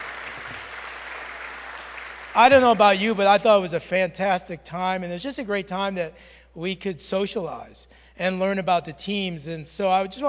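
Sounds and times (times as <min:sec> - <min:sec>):
audience applause: 0:00.0 - 0:03.3
speech: 0:02.4 - 0:10.2.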